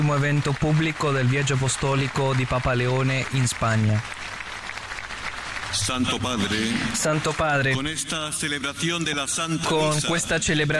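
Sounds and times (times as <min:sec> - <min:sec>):
applause of the faithful at an outdoor Holy Mass in Santa Cruz de Tenerife: 0:00.0 - 0:08.6
speech: 0:00.1 - 0:04.3, 0:05.7 - 0:10.7.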